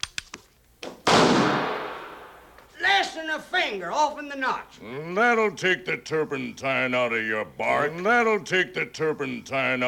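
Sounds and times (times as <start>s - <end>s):
rifle shot at a backwoods shooting contest: 1.0s - 2.5s
speech: 3.2s - 9.8s.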